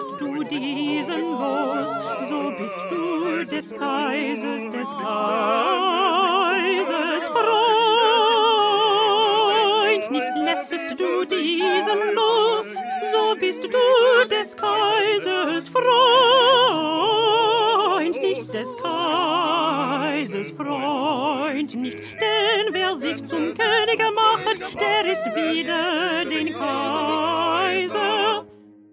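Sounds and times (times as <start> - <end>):
small alto choir singing: 0.0 - 28.6.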